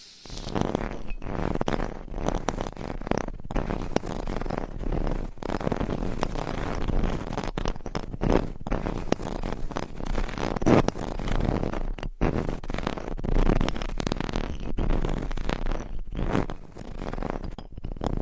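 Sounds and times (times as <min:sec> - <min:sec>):
binaural microphone scratching and rubbing: 0:00.0 - 0:18.2.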